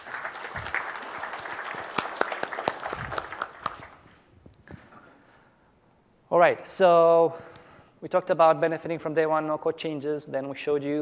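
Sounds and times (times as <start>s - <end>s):
audience applause: 0.0s - 4.0s
speech: 6.3s - 10.9s.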